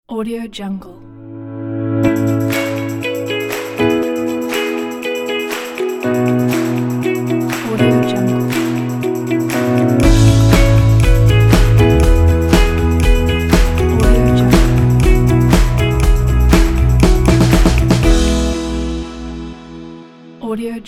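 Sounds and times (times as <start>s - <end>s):
corporate logo intro music: 1.3s - 7.6s, 8.4s - 20.0s.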